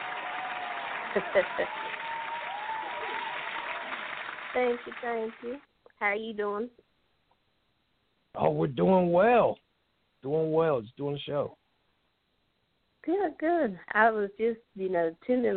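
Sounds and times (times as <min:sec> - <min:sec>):
audience clapping on a live call-in show: 0:00.0 - 0:05.6
speech: 0:01.2 - 0:02.0, 0:04.5 - 0:06.9, 0:08.4 - 0:09.6, 0:10.2 - 0:11.6, 0:13.0 - 0:15.5.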